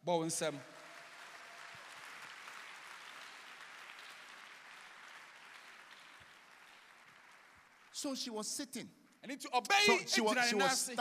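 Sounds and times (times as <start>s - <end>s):
speech: 0.0s - 0.8s, 8.0s - 10.9s
audience clapping: 0.1s - 8.5s.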